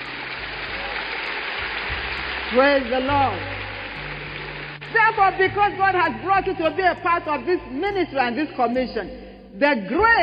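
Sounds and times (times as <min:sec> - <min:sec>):
audience clapping for Jesus: 0:00.0 - 0:05.6
speech: 0:02.5 - 0:03.5, 0:04.9 - 0:10.2.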